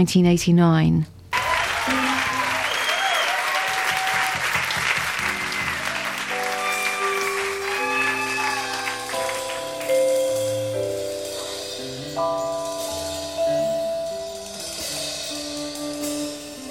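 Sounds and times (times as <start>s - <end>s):
speech: 0.0s - 1.2s
audience applause on live concert recording: 1.3s - 10.4s
sustained musical notes: 5.1s - 16.6s.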